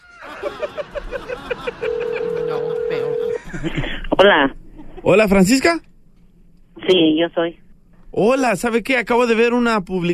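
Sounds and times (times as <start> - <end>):
laughter: 0.0 - 4.1
telephone ringing tone: 1.8 - 3.4
voice on phone line: 2.0 - 3.4
speech: 3.6 - 5.9, 6.9 - 10.1.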